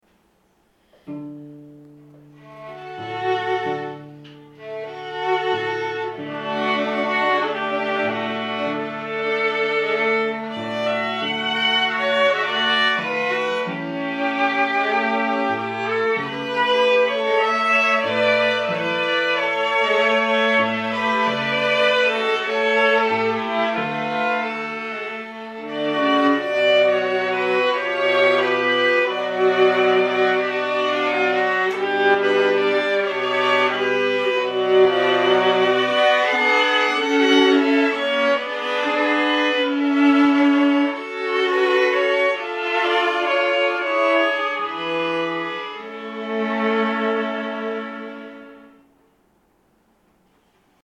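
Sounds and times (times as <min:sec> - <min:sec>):
quartet playing tango: 0:01.2 - 0:49.1.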